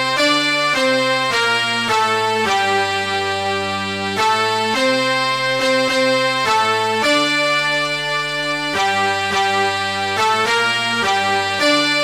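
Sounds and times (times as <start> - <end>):
instrumental national anthem: 0.0 - 12.0.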